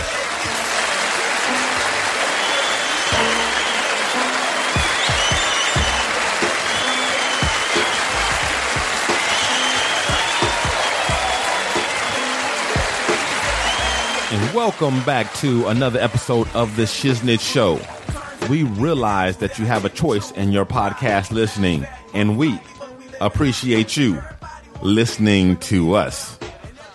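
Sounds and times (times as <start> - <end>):
crowd applauding: 0.0 - 20.2
speech: 14.6 - 26.4.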